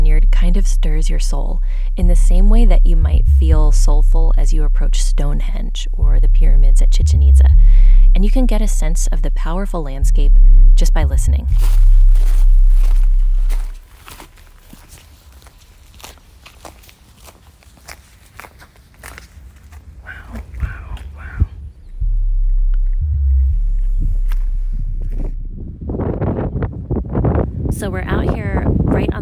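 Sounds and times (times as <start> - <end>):
low rumble: 0.0 - 14.9, 19.8 - 29.2
speech: 0.4 - 12.6
footsteps crunching across vineyard ground: 11.5 - 23.0, 23.6 - 25.4
wind howling across the vineyards: 19.3 - 29.2.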